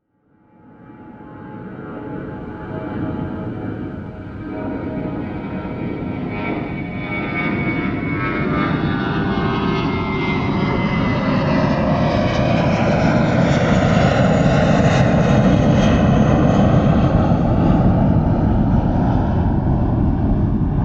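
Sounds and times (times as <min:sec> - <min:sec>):
jet airplane taking off: 0:00.7 - 0:20.8.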